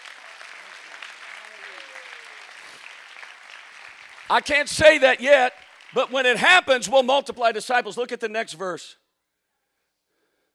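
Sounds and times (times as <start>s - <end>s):
audience clapping hands: 0.0s - 7.6s
speech: 4.3s - 9.0s.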